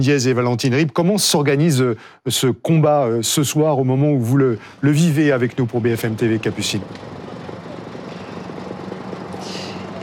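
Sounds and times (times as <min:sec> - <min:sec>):
speech: 0:00.0 - 0:07.2
firefighting helicopter flying overhead: 0:04.0 - 0:10.0.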